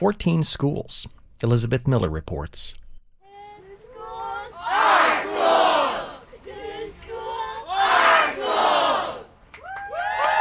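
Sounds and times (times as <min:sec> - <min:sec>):
speech: 0:00.0 - 0:02.8
protest crowd chanting at rally: 0:03.2 - 0:09.4
protest crowd cheering and shouting at rally: 0:03.2 - 0:10.3.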